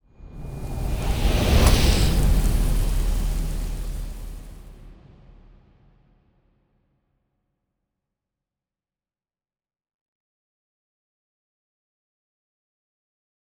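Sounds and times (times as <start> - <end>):
colony ship moving: 0.4 - 4.8.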